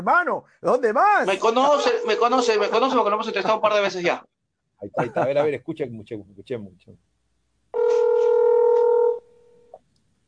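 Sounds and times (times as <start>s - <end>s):
speech: 0.0s - 7.1s
telephone dialing and ringing a call: 1.6s - 3.6s, 7.8s - 9.3s
laughter: 5.0s - 5.4s.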